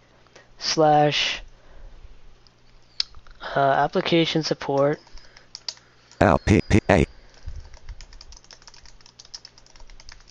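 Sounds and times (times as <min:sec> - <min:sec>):
speech: 0:00.7 - 0:01.4, 0:03.6 - 0:05.1, 0:06.2 - 0:07.0
typing on a computer keyboard: 0:04.8 - 0:06.2, 0:07.2 - 0:10.2.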